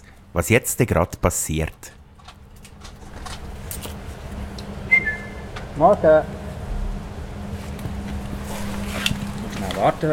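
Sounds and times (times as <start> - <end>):
speech: 0.4 - 2.0, 5.8 - 6.4, 9.6 - 10.1
zookeeper whistling to call king penguins: 4.9 - 5.5.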